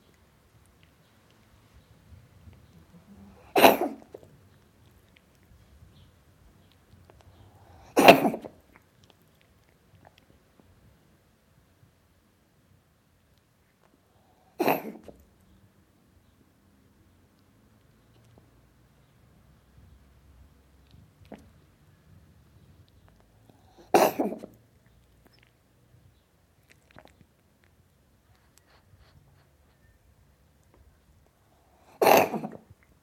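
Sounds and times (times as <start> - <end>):
cat coughing: 3.3 - 4.2, 7.8 - 8.6, 14.6 - 15.2, 23.7 - 24.6, 31.9 - 32.7.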